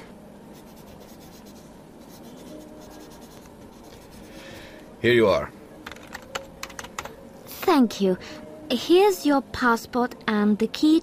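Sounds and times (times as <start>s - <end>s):
pen scratching on paper filling in a hotel registration card: 0.5s - 4.5s
speech: 5.0s - 5.6s, 7.7s - 11.0s.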